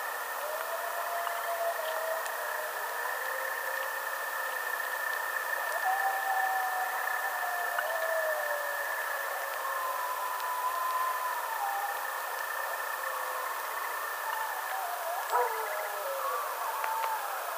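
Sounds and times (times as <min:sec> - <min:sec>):
coyote Canis latrans howling: 0:00.1 - 0:17.5.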